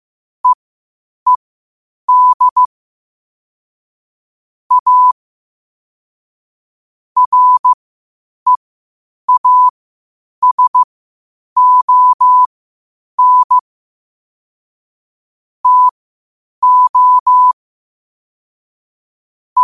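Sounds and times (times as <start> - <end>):
morse code at 5 wpm: 2.1 - 2.7, 4.7 - 5.2, 7.2 - 7.8, 9.3 - 9.7, 10.4 - 10.9, 11.6 - 12.5, 13.2 - 13.6, 15.6 - 15.9, 16.6 - 17.6.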